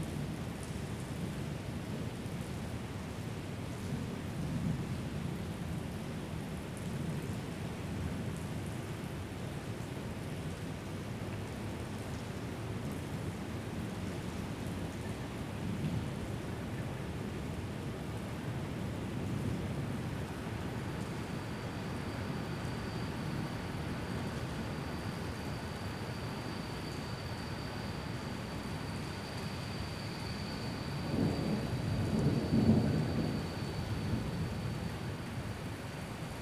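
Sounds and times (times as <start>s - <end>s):
rain in Genova at night: 0.0s - 36.4s
thunder in Genova at night: 30.8s - 34.9s.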